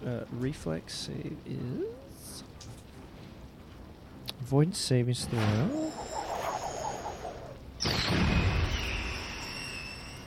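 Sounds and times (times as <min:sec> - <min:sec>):
speech: 0:00.2 - 0:02.5, 0:04.4 - 0:06.0, 0:08.0 - 0:08.4
magic missile spell sound effect from a tabletop role-playing game: 0:05.2 - 0:10.2.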